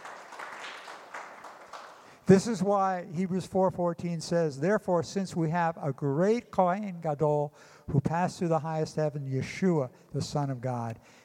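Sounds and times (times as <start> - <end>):
audience applause: 0.0 - 2.2
speech: 2.3 - 11.2.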